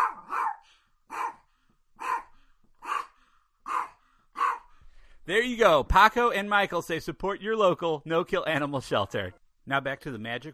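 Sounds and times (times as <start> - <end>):
dog barking: 0.0 - 4.7
speech: 5.3 - 10.5.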